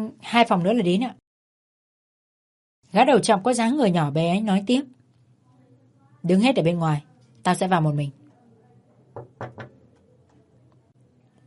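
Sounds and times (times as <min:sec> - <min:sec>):
speech: 0:00.0 - 0:01.2, 0:02.9 - 0:05.0, 0:06.2 - 0:08.2
knocking on a hotel room door: 0:09.1 - 0:09.8.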